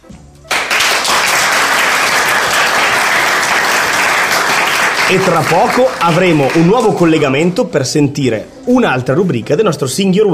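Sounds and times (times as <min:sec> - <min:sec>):
applause: 0:00.5 - 0:07.2
speech: 0:05.1 - 0:10.3.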